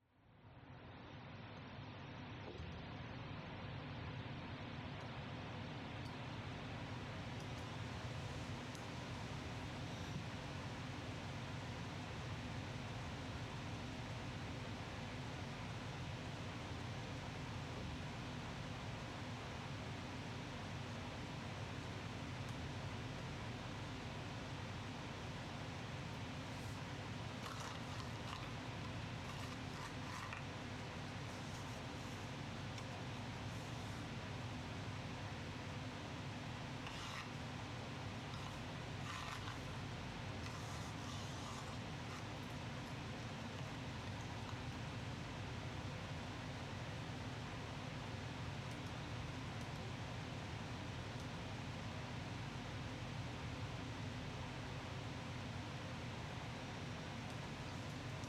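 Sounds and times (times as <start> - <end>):
noise: 0.0 - 58.2.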